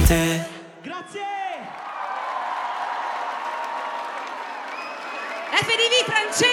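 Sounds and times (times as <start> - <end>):
speech: 0.1 - 1.4, 5.6 - 6.5
whistle or cheer: 0.8 - 6.5
large audience applause: 1.5 - 6.5.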